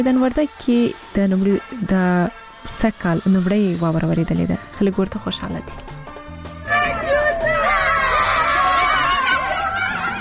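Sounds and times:
speech: 0.0s - 5.9s
children shouting and screaming while playing in the snow in Maidan Wardak province: 6.6s - 10.1s.

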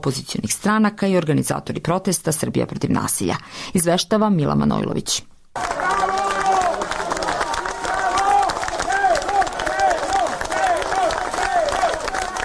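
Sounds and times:
speech: 0.0s - 5.7s
crowd clapping outside the Special Court in Belgrade: 5.6s - 12.4s.

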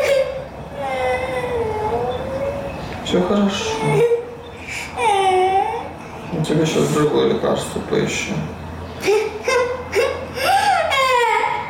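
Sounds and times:
young girl whimpering and crying after a minor burn: 0.0s - 2.7s, 3.6s - 6.1s, 9.0s - 11.6s
speech: 3.1s - 4.2s, 6.5s - 8.6s.

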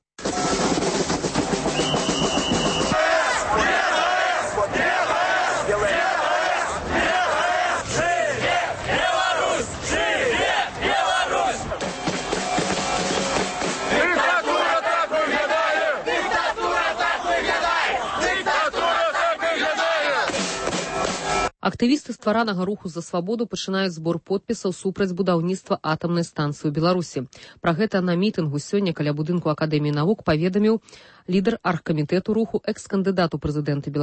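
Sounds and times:
crowd roar: 0.2s - 21.5s
crowd chanting at a protest rally: 2.7s - 21.5s
speech: 21.8s - 34.0s.

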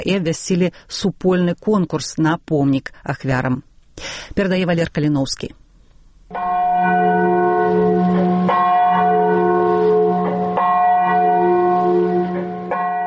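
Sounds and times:
speech: 0.0s - 5.6s
deep Katyn memorial bell tolling: 6.3s - 13.0s.

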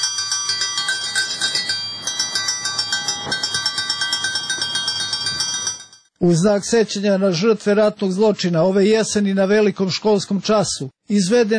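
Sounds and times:
school bell ringing: 0.0s - 6.2s
speech: 6.2s - 11.5s.

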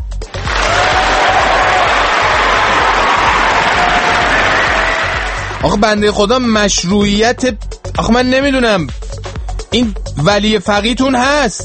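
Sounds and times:
audience applause for a poet's recital: 0.3s - 5.6s
speech: 5.6s - 9.0s, 9.7s - 11.6s.

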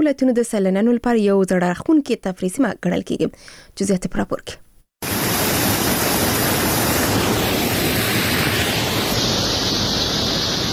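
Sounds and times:
speech: 0.0s - 4.6s
water flowing from the Mazar Baba spring in Uruzgan: 5.0s - 10.7s.

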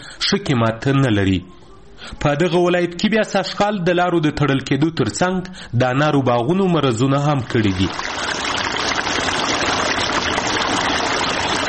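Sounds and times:
speech: 0.3s - 8.3s
irrigation water flowing through a pomegranate orchard in Sepidkhar near Tarinkot: 7.4s - 11.6s.

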